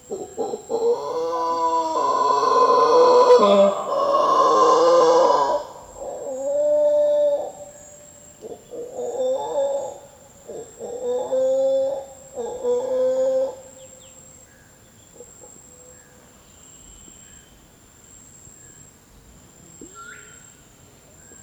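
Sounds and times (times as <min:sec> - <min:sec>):
mantled howler Alouatta palliata howling: 0:00.1 - 0:07.8, 0:08.5 - 0:13.8.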